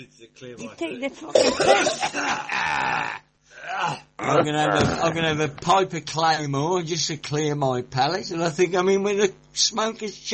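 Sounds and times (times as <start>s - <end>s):
speech: 0.0s - 10.3s
coughing: 1.2s - 5.2s.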